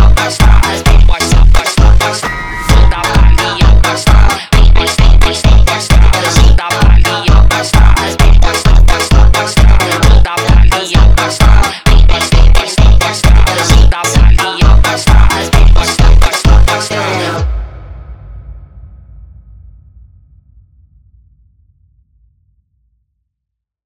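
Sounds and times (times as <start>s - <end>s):
sped up funk music: 0.0s - 17.4s.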